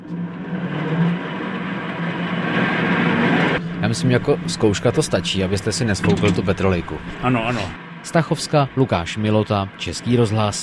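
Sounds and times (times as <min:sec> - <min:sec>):
hand-cranked ventilation fan: 0:00.0 - 0:07.4
speech: 0:03.9 - 0:10.6.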